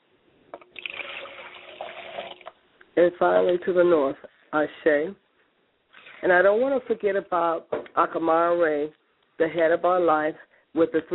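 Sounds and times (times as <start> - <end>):
liquid libation pouring: 0.6 - 2.6
speech: 3.0 - 5.2, 6.2 - 11.1.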